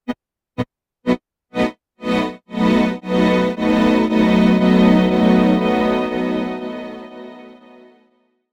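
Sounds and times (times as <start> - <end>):
strings: 2.0 - 8.0.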